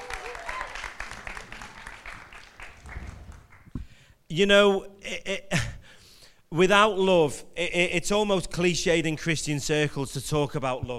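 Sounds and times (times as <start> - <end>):
audience applause welcoming a speaker: 0.0 - 3.9
speech: 4.3 - 5.5, 6.6 - 10.9.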